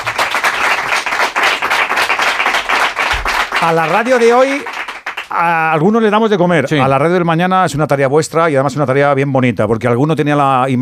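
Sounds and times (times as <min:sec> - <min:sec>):
room full of people applauding: 0:00.0 - 0:06.0
speech: 0:03.6 - 0:04.7, 0:05.3 - 0:10.7.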